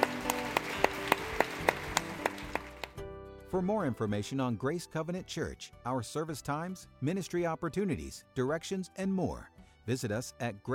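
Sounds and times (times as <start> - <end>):
audience applause: 0.0 - 3.0
speech: 3.5 - 10.7.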